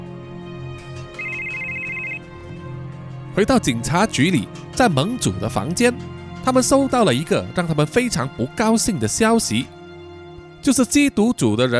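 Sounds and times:
telephone ringing: 0:01.2 - 0:02.2
speech: 0:03.4 - 0:09.8, 0:10.6 - 0:11.7.

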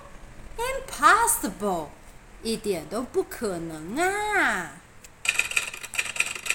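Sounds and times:
speech: 0:01.0 - 0:04.8
typewriter typing: 0:05.2 - 0:06.5.

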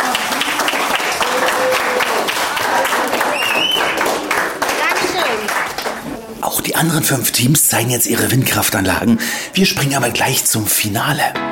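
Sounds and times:
applause: 0:00.0 - 0:06.1
speech: 0:06.8 - 0:11.5.

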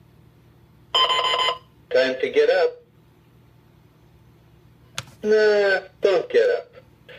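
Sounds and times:
novelty alarm clock electronic ringing tone: 0:01.0 - 0:01.6
speech: 0:02.0 - 0:02.8, 0:05.2 - 0:06.6.

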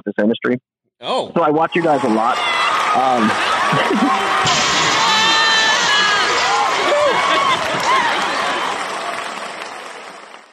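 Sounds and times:
speech: 0:00.1 - 0:04.6
crowd applause: 0:01.7 - 0:10.5
laughter: 0:02.9 - 0:08.8.

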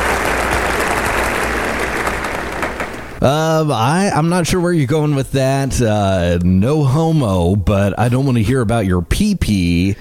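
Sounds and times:
studio audience applauding: 0:00.0 - 0:03.2
speech: 0:03.2 - 0:10.0.

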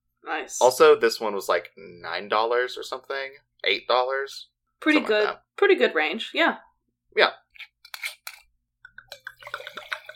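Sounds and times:
speech: 0:00.3 - 0:07.7
wine poured vigorously into a glass: 0:09.0 - 0:10.1.

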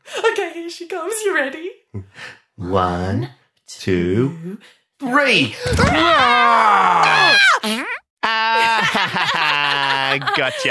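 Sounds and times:
speech: 0:00.6 - 0:07.9, 0:10.1 - 0:10.6
children roaring like dinosaurs: 0:05.9 - 0:07.6
laughter: 0:08.2 - 0:10.6.

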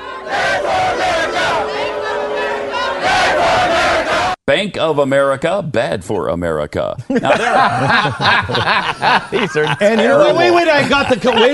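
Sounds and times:
protest crowd yelling a chant: 0:00.0 - 0:04.4
speech: 0:04.5 - 0:11.5
laughter: 0:07.1 - 0:11.5.

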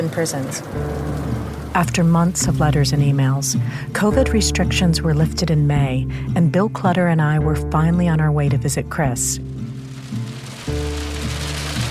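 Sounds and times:
heavy pouring rain: 0:00.0 - 0:04.2, 0:09.2 - 0:11.8
speech: 0:00.0 - 0:09.7.

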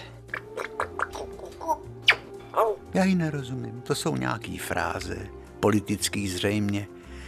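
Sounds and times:
parrot chattering and squawking in its cage: 0:00.3 - 0:02.8
speech: 0:02.6 - 0:07.0.

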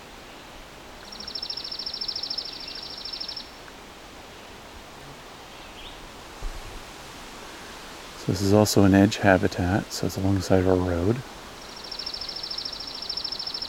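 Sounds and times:
chipping sparrow song: 0:00.3 - 0:03.6, 0:11.6 - 0:13.6
speech: 0:08.3 - 0:11.4.

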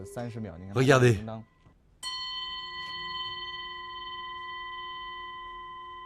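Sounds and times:
speech: 0:00.0 - 0:01.5
Tibetan horse bell ringing: 0:02.0 - 0:06.0.

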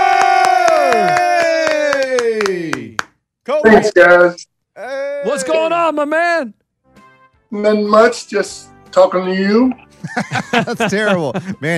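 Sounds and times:
audience voices whooping: 0:00.0 - 0:02.6
audience clapping: 0:00.0 - 0:03.2
speech: 0:03.6 - 0:06.6, 0:07.5 - 0:11.7
laughter: 0:09.9 - 0:11.7.

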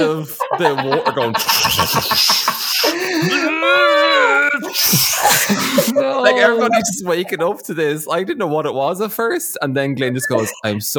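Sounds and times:
laughter: 0:00.0 - 0:08.0, 0:10.1 - 0:10.8
speech: 0:00.0 - 0:10.9
voice imitating someone vomiting: 0:02.8 - 0:07.4.

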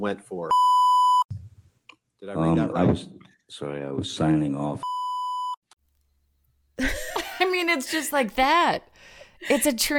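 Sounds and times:
speech: 0:00.0 - 0:01.0, 0:02.2 - 0:04.9, 0:07.8 - 0:09.9
censor bleep over a swear word: 0:00.5 - 0:01.3, 0:04.8 - 0:05.6.

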